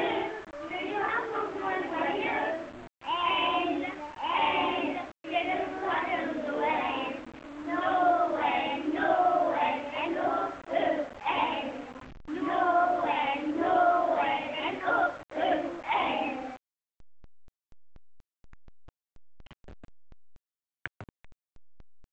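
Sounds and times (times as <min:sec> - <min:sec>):
pupils singing a Christmas song: 0:00.0 - 0:16.6.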